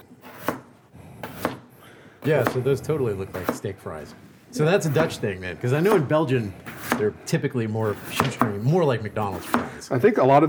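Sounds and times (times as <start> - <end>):
knife chopping potatoes on a cutting board: 0.0 - 2.7, 3.3 - 3.8, 4.7 - 7.2, 7.8 - 9.8
speech: 2.2 - 10.4.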